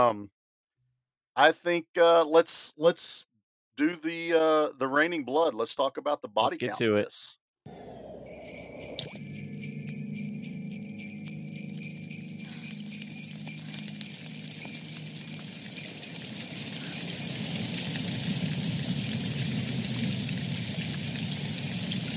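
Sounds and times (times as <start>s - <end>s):
speech: 0.0s - 0.4s, 1.4s - 7.8s
jingling Christmas bells: 8.3s - 22.1s.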